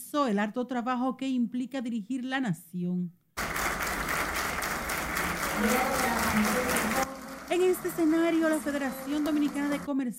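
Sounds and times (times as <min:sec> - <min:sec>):
speech: 0:00.1 - 0:03.2, 0:05.6 - 0:10.1
crowd applauding: 0:03.4 - 0:09.9.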